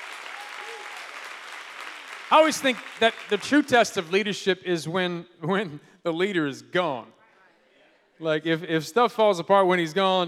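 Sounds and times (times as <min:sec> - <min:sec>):
audience clapping hands: 0:00.0 - 0:04.3
speech: 0:02.3 - 0:07.2, 0:08.2 - 0:10.2.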